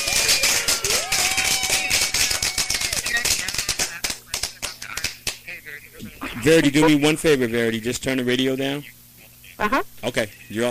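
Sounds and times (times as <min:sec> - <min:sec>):
whistle-like cheer: 0:00.0 - 0:03.0
applause sound effect: 0:00.0 - 0:05.4
speech: 0:06.4 - 0:09.0, 0:09.6 - 0:10.6.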